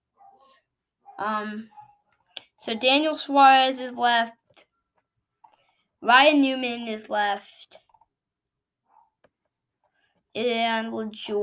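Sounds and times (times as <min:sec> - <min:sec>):
dog barking: 0:00.1 - 0:03.0, 0:08.8 - 0:09.2
speech: 0:01.2 - 0:01.8, 0:02.6 - 0:04.7, 0:06.0 - 0:07.8, 0:10.4 - 0:11.4.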